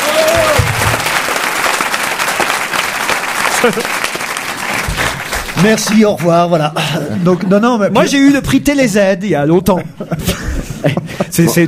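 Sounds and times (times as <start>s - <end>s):
audience applause: 0.0s - 6.6s
laughter: 3.4s - 4.1s, 9.6s - 11.6s
speech: 3.6s - 4.1s, 5.6s - 11.6s.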